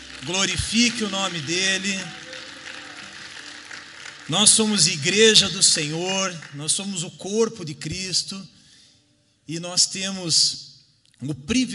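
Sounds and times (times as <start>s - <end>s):
audience applauding: 0.0s - 7.0s
speech: 0.2s - 2.2s, 4.3s - 8.6s, 9.5s - 11.7s.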